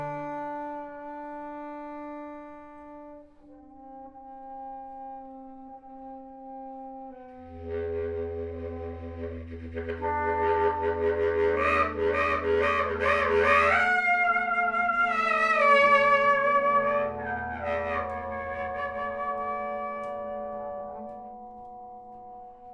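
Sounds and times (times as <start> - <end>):
trombone: 3.5 - 21.1.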